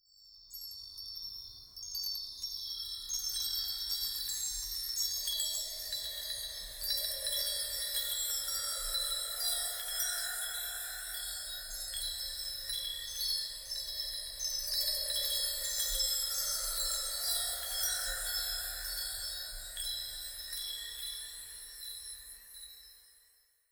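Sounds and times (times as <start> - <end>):
chimes: 0.1 - 23.7.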